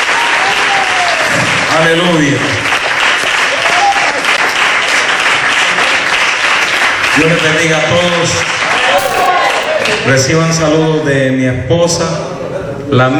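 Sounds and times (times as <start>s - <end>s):
audience applause: 0.0s - 1.7s, 2.5s - 7.4s
speech: 1.8s - 2.7s, 7.2s - 8.7s, 9.8s - 13.1s.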